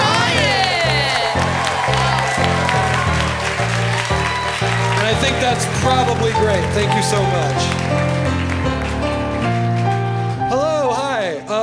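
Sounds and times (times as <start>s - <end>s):
crowd applauding and cheering: 0.0s - 11.4s
music with sustained chords: 0.0s - 11.6s
speech: 5.5s - 8.4s.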